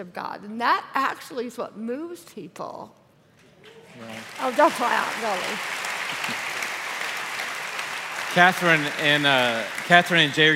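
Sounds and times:
speech: 0:00.0 - 0:03.0, 0:04.0 - 0:06.4, 0:08.4 - 0:10.5
audience clapping: 0:03.4 - 0:10.5.

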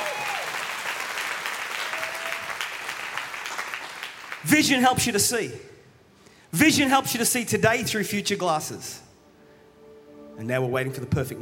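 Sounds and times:
audience applause: 0:00.0 - 0:04.4
speech: 0:04.4 - 0:05.7, 0:06.5 - 0:09.1, 0:10.4 - 0:11.4.

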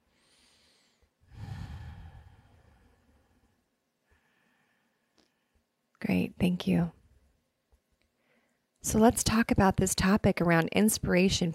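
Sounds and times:
deeper breathing during a guided breathing exercise: 0:00.1 - 0:05.7
speech: 0:06.2 - 0:07.0, 0:08.8 - 0:11.5.

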